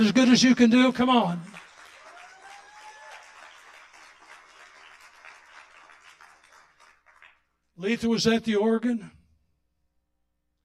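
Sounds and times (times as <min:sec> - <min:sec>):
speech: 0:00.0 - 0:01.6, 0:07.8 - 0:09.2
audience applause: 0:01.3 - 0:07.4.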